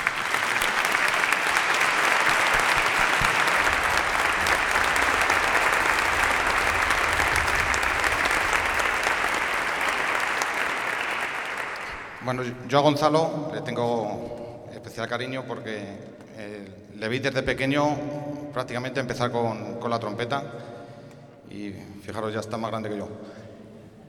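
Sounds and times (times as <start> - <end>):
audience applause: 0.0 - 12.4
speech: 12.4 - 14.4, 15.0 - 20.7, 21.5 - 23.4.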